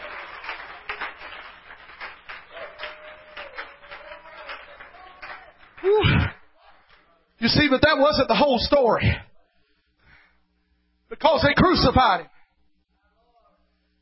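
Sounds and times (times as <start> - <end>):
audience clapping hands in a steady rhythm: 0.0 - 7.1
sudden loud vocal shout: 2.5 - 6.8
speech: 7.4 - 9.3, 11.2 - 12.3.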